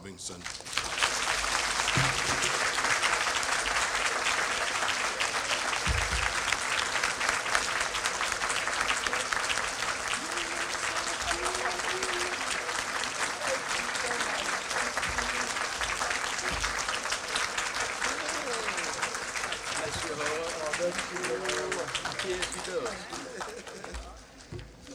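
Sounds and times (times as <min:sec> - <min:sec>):
voices: 0:00.0 - 0:24.9
audience applause welcoming a speaker at a Talladega County event: 0:00.3 - 0:24.9
laughter: 0:00.8 - 0:24.9.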